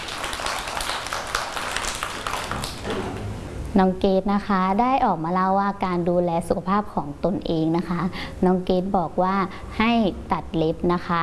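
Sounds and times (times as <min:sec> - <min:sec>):
group of children clapping together: 0:00.0 - 0:02.9
speech: 0:03.8 - 0:11.2.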